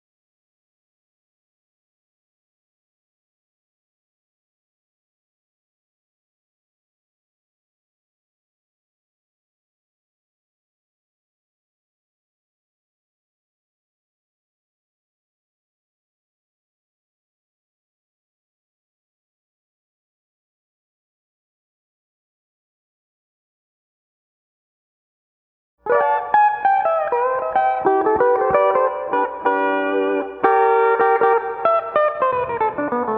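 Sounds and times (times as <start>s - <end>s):
steel guitar: 25.9s - 33.1s.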